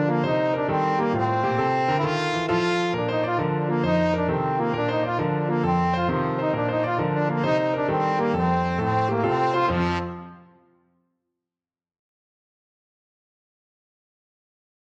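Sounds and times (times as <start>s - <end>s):
trombone playing a kolo: 0.0s - 10.6s.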